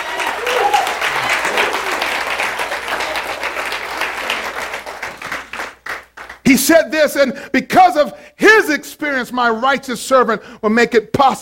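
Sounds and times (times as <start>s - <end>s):
audience hand clapping: 0.0s - 6.5s
speech: 6.5s - 11.4s.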